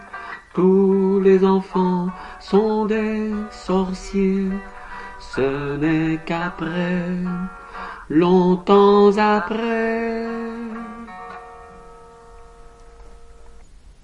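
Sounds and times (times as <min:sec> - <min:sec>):
sopranos singing a chorale: 0:00.6 - 0:11.1.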